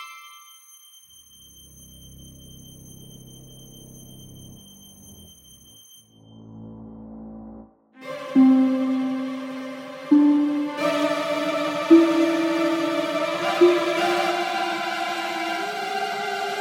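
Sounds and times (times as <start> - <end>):
pentatonic scale played: 8.0 - 16.5.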